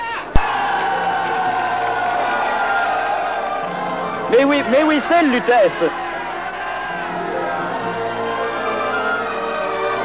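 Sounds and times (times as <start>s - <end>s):
large crowd stirring and cheering at harbour: 0.0s - 10.0s
sharp crack: 0.3s - 0.6s
speech: 4.3s - 6.0s.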